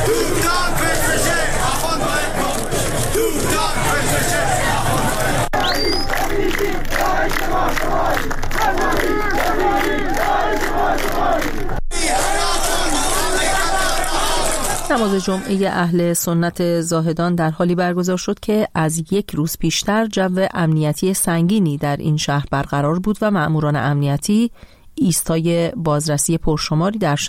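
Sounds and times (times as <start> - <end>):
protest crowd chanting anti-government slogans: 0.0 - 16.0
speech: 15.1 - 27.2.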